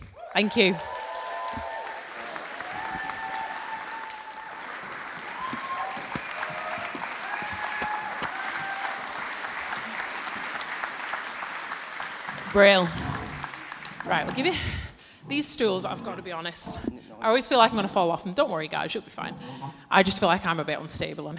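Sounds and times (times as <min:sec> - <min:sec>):
audience applause: 0:00.0 - 0:14.8
speech: 0:00.4 - 0:01.0, 0:12.6 - 0:13.0, 0:14.1 - 0:21.3.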